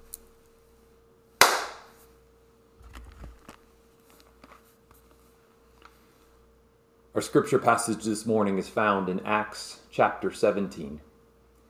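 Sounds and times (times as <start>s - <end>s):
single hand clap for audio syncing: 1.4s - 2.0s
speech: 7.2s - 11.1s.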